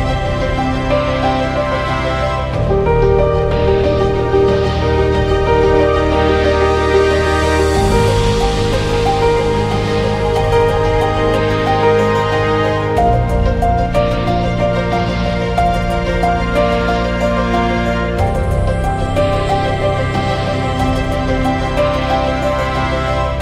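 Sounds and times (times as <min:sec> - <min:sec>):
ambient piano: 0:00.0 - 0:23.4.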